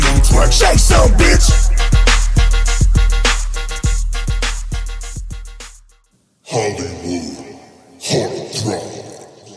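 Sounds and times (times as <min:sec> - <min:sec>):
whistle remix music: 0:00.0 - 0:05.9.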